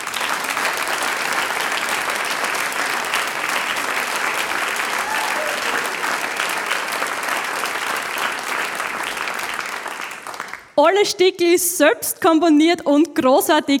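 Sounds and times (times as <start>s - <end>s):
audience applause: 0.0s - 10.8s
speech: 10.8s - 13.7s.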